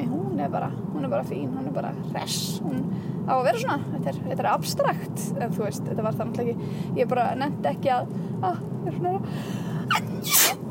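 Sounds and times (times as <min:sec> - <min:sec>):
speech: 0:00.4 - 0:10.6
sneeze: 0:09.9 - 0:10.6.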